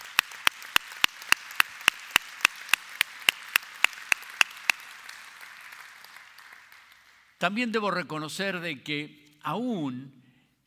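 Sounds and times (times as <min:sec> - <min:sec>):
audience applauding in unison: 0:00.0 - 0:07.4
speech: 0:07.4 - 0:10.6.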